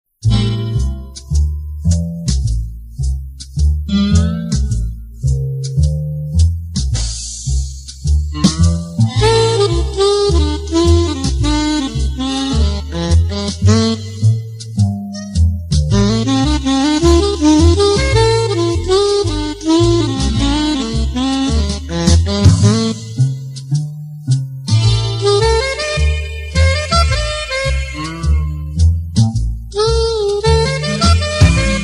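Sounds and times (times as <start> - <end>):
instrumental music: 0.2 - 31.8.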